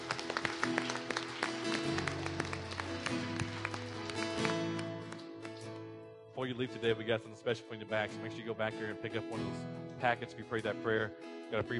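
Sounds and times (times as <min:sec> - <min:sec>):
audience clapping hands: 0:00.0 - 0:05.9
speech: 0:06.5 - 0:11.7.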